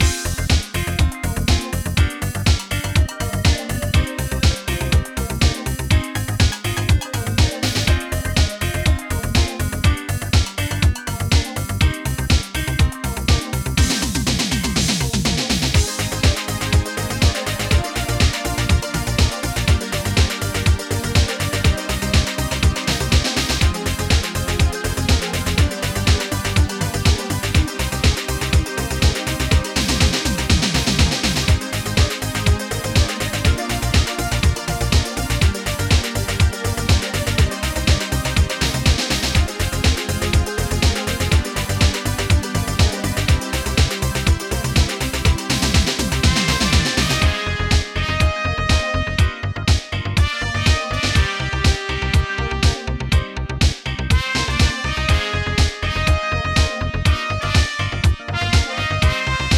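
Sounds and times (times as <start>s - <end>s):
dub remix music: 0.0s - 59.5s.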